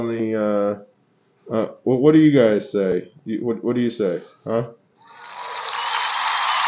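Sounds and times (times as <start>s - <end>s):
speech: 0.0s - 0.9s, 1.5s - 4.8s
crowd applause sound effect: 5.1s - 6.6s.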